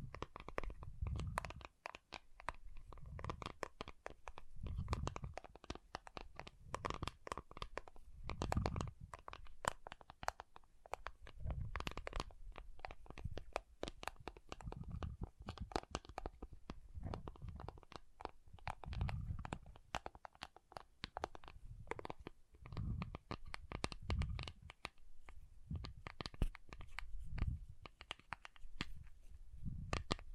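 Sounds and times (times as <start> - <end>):
water beads squished and rolled: 0.0 - 29.1, 29.7 - 30.3.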